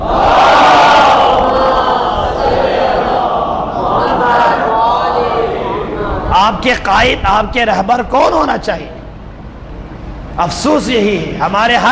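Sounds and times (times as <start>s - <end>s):
crowd shouting a religious slogan in unison: 0.0s - 6.3s
speech: 6.6s - 9.0s, 10.4s - 11.8s.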